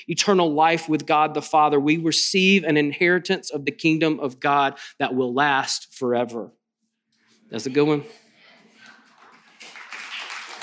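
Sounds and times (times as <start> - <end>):
speech: 0.0 - 6.6, 7.5 - 8.2
clapping: 8.8 - 10.6.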